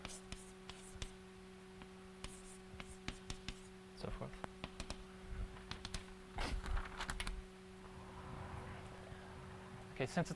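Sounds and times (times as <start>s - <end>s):
scratchy strokes of drawing pictures by hand: 0.0s - 1.2s, 2.2s - 3.7s
steady low hum: 0.0s - 10.3s
speech: 4.0s - 4.5s, 10.0s - 10.3s.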